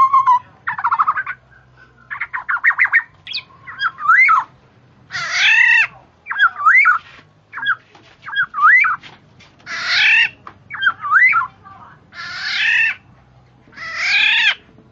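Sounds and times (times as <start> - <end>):
bird chirping calls: 0.0 - 13.1, 13.7 - 14.7.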